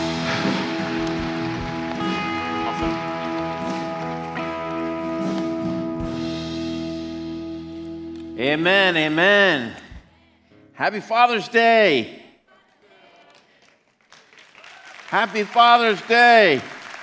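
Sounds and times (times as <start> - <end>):
audience applause: 0.0 - 5.8, 13.3 - 17.0
sustained musical chord: 0.0 - 9.0
speech: 8.4 - 9.8, 10.8 - 12.2, 15.1 - 16.7.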